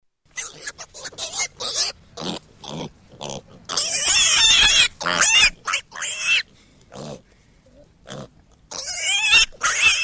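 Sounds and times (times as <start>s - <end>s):
piglet squealing: 0.3s - 2.4s, 3.3s - 7.2s, 8.1s - 10.0s.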